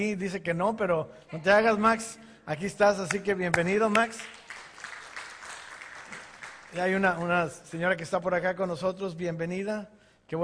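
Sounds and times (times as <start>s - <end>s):
speech: 0.0s - 4.5s, 6.7s - 10.4s
audience applause: 3.9s - 7.3s.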